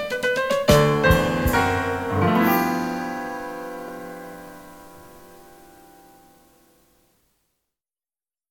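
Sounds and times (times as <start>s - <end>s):
blues music: 0.0s - 6.5s.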